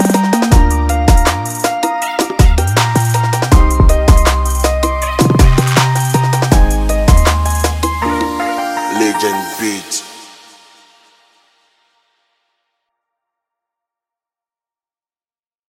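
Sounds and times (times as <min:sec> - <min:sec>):
Afro hip hop cypher beat: 0:00.0 - 0:11.0.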